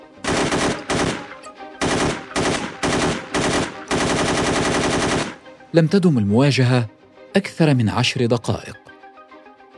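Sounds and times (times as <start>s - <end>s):
gunfire: 0.2s - 5.4s
speech: 5.7s - 8.8s.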